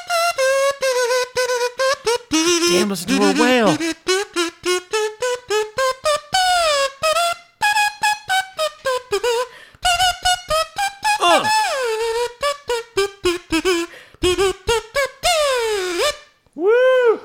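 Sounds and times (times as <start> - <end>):
buzzy kazoo solo: 0.0 - 16.4
speech: 2.4 - 4.0.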